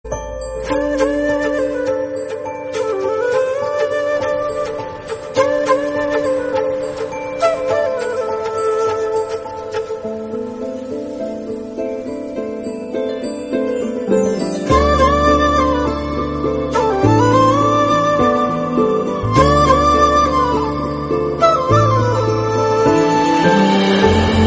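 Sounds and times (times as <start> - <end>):
romantic tone: 0.1 - 24.4.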